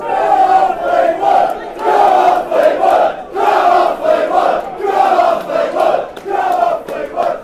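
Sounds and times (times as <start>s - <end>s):
chanting: 0.0s - 7.4s.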